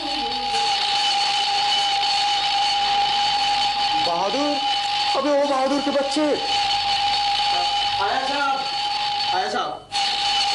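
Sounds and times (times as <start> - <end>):
alarm clock ringing: 0.0 - 10.5
speech: 5.6 - 6.7.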